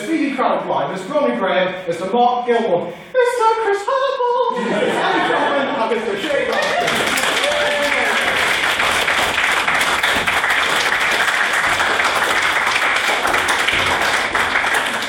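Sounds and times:
speech: 0.0s - 7.2s
laughter: 4.0s - 8.4s
audience applause: 6.2s - 15.0s.

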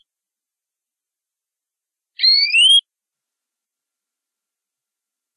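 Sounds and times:
canary rolling trill song: 2.2s - 2.8s.

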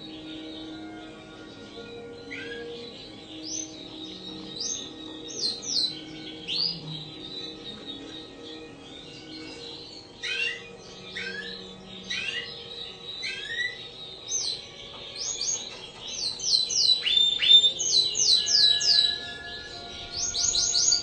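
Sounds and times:
Spanish Timbrado canary singing long rolling song: 0.0s - 21.0s.

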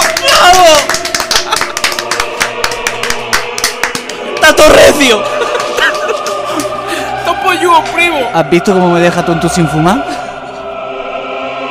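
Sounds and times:
hand clapping: 0.0s - 4.7s, 5.4s - 6.8s
laughter: 1.1s - 2.4s, 4.9s - 7.1s
speech: 4.6s - 5.4s, 7.8s - 10.2s.

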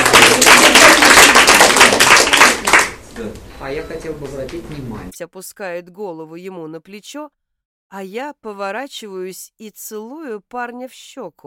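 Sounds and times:
loud dense applause: 0.0s - 3.0s
speech: 3.6s - 11.4s.

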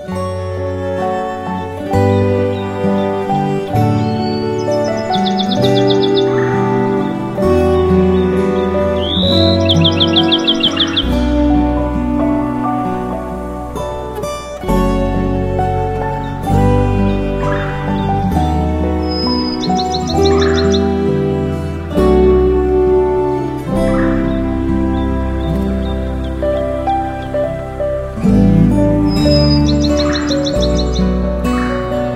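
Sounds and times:
melodic instrumental music with sustained tones and deep bass: 0.0s - 32.1s
bird trills and chirps: 1.0s - 12.2s, 13.1s - 32.1s.

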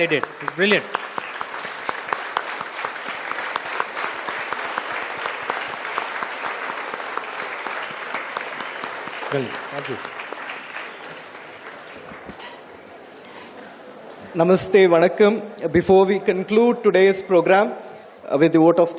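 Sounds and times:
speech: 0.0s - 1.0s, 9.3s - 10.1s, 14.4s - 18.9s
audience applause: 0.0s - 12.8s.

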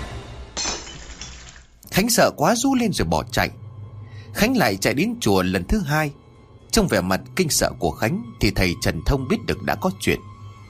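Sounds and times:
flower vase and incense bowl shattering on a brick floor: 0.5s - 1.9s
speech: 1.9s - 3.6s, 4.3s - 6.2s, 6.7s - 10.3s.

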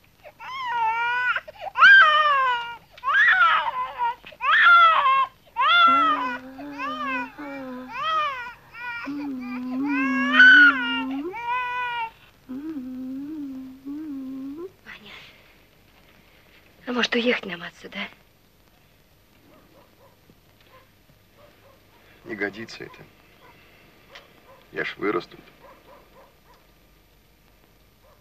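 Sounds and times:
low steady hum: 0.0s - 28.1s
baby crying in loud high-pitched wailing bursts: 0.2s - 12.2s
speech: 17.2s - 18.2s, 22.5s - 23.2s, 24.7s - 25.6s.

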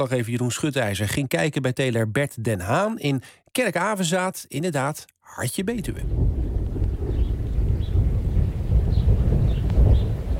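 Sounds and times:
speech: 0.0s - 6.4s
distant thunder rumbling: 5.7s - 10.3s.

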